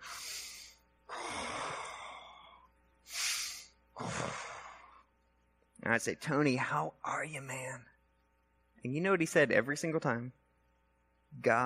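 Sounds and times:
imitated Darth Vader respirator breathing: 0:00.0 - 0:05.1
speech: 0:05.9 - 0:07.9, 0:08.8 - 0:10.4, 0:11.3 - 0:11.6.

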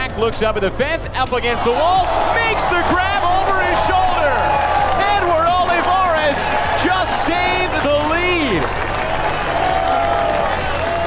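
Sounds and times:
speech: 0:00.2 - 0:09.5
Warner Park baseball crowd standing ovation: 0:01.3 - 0:11.0.

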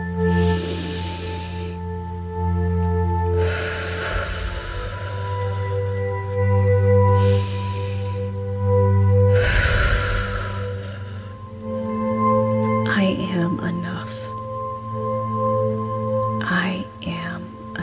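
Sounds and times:
low musical drone: 0:00.0 - 0:17.8
slow meditative breathing in through the nose and out through the mouth: 0:00.3 - 0:01.8, 0:03.4 - 0:05.7, 0:07.2 - 0:08.4, 0:09.3 - 0:11.5.

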